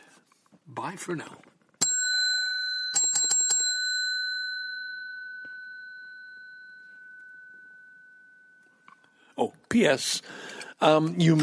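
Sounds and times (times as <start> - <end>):
speech: 0.8 - 1.5, 9.4 - 11.4
bell ringing: 1.8 - 9.4.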